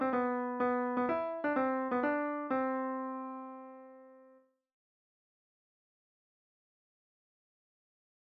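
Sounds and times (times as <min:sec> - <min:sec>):
piano: 0:00.0 - 0:04.5.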